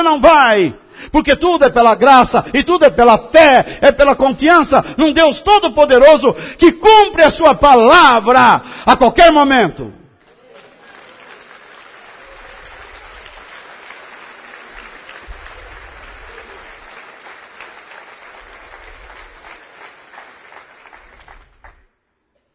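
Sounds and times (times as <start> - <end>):
speech: 0.0 - 10.0
audience clapping: 10.2 - 22.0.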